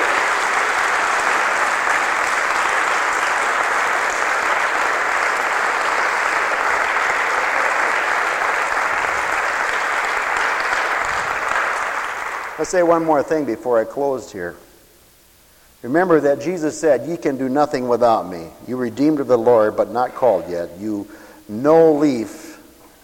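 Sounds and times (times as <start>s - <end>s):
church congregation applauding: 0.0s - 13.5s
speech: 12.6s - 14.6s, 15.8s - 22.4s.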